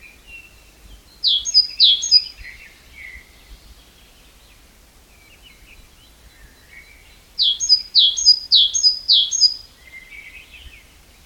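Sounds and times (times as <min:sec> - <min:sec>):
great tit calling: 0:01.2 - 0:02.4, 0:07.4 - 0:09.6.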